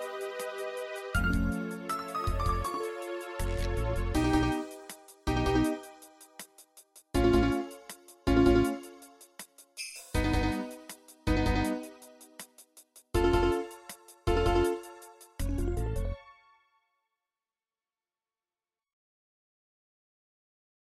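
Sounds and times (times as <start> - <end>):
MIDI music: 0.0 - 6.4, 7.1 - 9.1, 10.1 - 12.3, 13.2 - 16.3.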